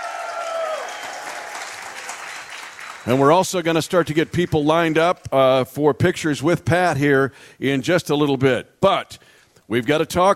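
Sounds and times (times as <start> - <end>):
live show audience cheering: 0.0 - 3.3
live show audience clapping: 0.0 - 5.2
speech: 3.0 - 10.3.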